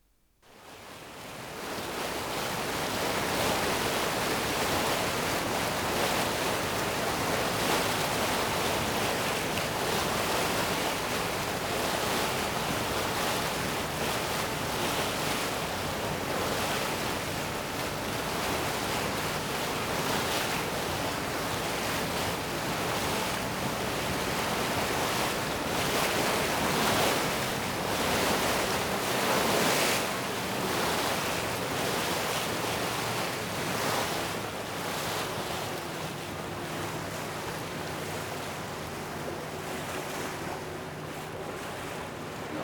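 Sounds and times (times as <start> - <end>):
wind on a steamboat ride: 0.0 - 42.6
rushing water from a steamboat ride: 0.6 - 42.6.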